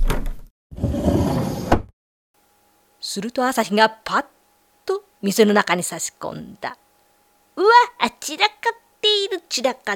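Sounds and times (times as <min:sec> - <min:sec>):
sake shop's front sliding door being pushed open: 0:00.1 - 0:01.9
speech: 0:03.1 - 0:04.3, 0:05.2 - 0:06.9, 0:07.6 - 0:09.9.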